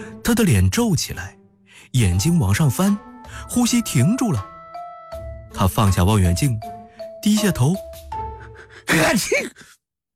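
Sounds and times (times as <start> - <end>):
speech: 0.2 - 4.5, 5.6 - 8.0, 8.9 - 9.8
man sneezing: 8.9 - 9.7.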